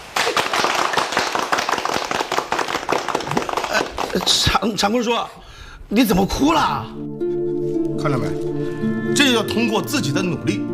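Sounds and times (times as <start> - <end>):
applause: 0.0 - 4.6
speech: 4.1 - 7.0, 8.0 - 10.7.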